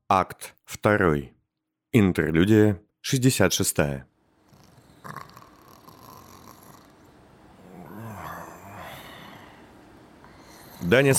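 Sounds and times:
speech: 0.1 - 4.1, 10.8 - 11.1
drunk man snoring: 4.5 - 11.1.

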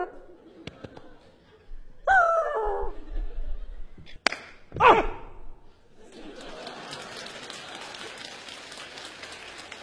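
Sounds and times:
laughter: 0.2 - 4.2, 5.9 - 9.8
faint audience applause after a magic trick: 6.1 - 9.8.

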